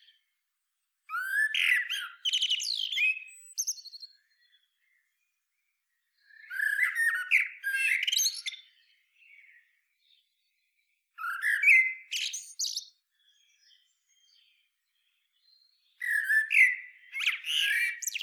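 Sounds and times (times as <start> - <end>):
Eurasian blackbird song: 0.0 - 18.2.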